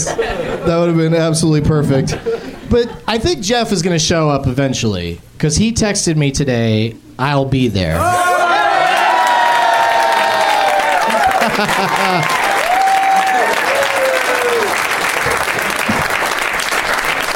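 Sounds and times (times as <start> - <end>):
laughter: 0.0 - 1.0, 1.8 - 3.2, 10.0 - 14.0
speech: 0.0 - 8.3, 11.6 - 12.4
audience applause: 8.4 - 17.3.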